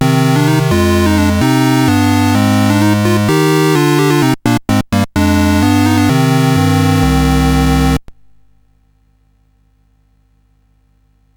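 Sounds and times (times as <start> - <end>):
SID chiptune music on CSG8580R5 chip: 0.0 - 8.4.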